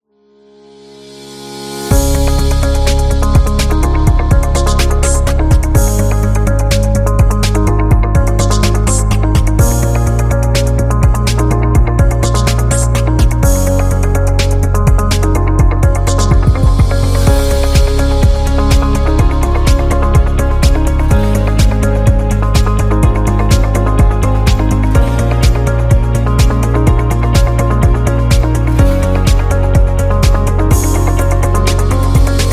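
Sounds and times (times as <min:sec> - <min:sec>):
technology background music: 0:01.1 - 0:32.5.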